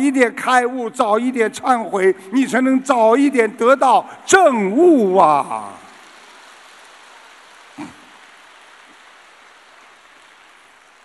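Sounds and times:
speech: 0.0s - 5.8s
audience applause: 5.4s - 11.0s.

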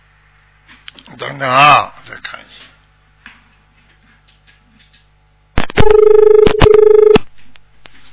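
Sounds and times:
speech: 1.2s - 2.4s
telephone line tone: 5.8s - 7.2s.

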